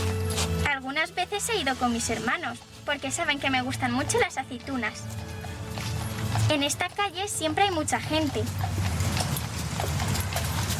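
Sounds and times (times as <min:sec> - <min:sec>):
hooves clip-clopping: 0:00.0 - 0:10.7
wheels rumbling: 0:00.0 - 0:10.7
speech: 0:00.9 - 0:05.3, 0:06.5 - 0:08.9
horse-drawn carts clattering along a street: 0:04.6 - 0:10.7.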